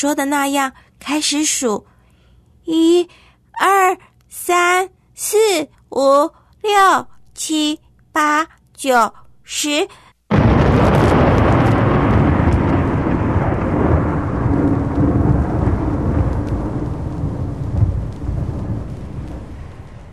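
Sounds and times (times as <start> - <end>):
speech: 0.0 - 1.9, 2.6 - 10.0
thunder rumbling: 10.3 - 20.1.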